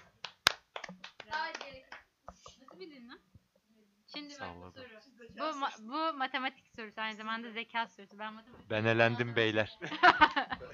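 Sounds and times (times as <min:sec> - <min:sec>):
hand claps: 0:00.0 - 0:02.6
speech: 0:04.2 - 0:10.7
laughter: 0:09.4 - 0:10.7.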